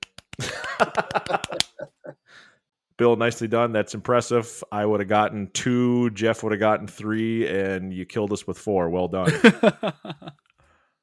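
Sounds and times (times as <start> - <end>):
golf clap: 0.0 - 1.8
laughter: 0.4 - 2.2, 9.2 - 10.3
speech: 0.8 - 2.0, 3.0 - 10.5.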